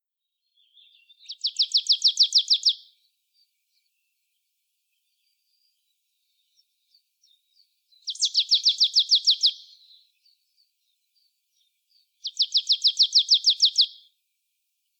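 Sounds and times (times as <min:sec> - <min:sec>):
marsh tit Poecile palustris call: 0:00.8 - 0:02.8, 0:08.1 - 0:09.9, 0:12.2 - 0:14.0.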